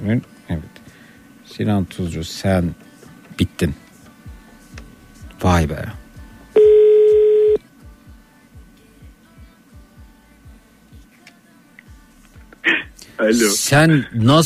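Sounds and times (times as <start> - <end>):
speech: 0.0 - 0.6, 1.5 - 3.8, 5.4 - 6.0, 13.2 - 14.4
soft regular low ringing pulses: 6.6 - 7.6
telephone dialing tone: 6.6 - 7.6.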